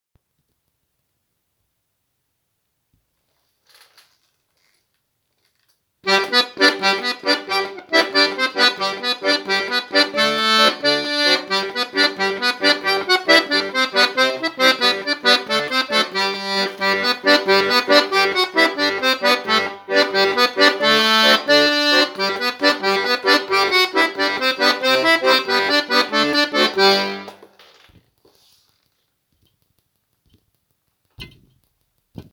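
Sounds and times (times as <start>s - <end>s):
jig music: 6.1s - 27.6s.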